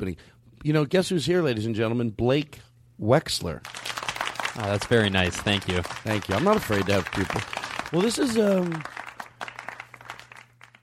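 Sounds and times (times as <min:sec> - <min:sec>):
speech: 0:00.0 - 0:04.0, 0:04.6 - 0:09.0
audience applauding: 0:03.7 - 0:10.8.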